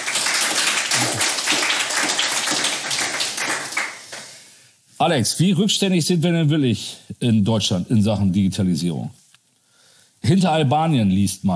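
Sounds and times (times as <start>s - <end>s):
thunderous applause: 0.0s - 4.1s
speech: 5.0s - 9.2s, 10.3s - 11.5s.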